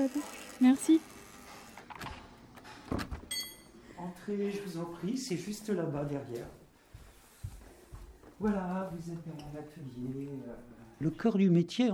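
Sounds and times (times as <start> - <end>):
speech: 0.0 - 1.2, 4.3 - 6.6, 8.4 - 11.9
workshop door creaking as it swings: 0.1 - 3.4
workshop door clunk: 1.9 - 3.4.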